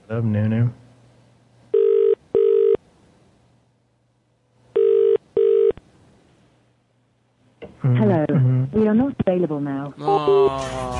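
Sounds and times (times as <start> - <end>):
faint low hum: 0.0 - 10.9
speech: 0.1 - 0.8, 8.3 - 10.9
outgoing phone ringback tone: 1.7 - 2.8, 4.8 - 5.8, 10.3 - 10.5.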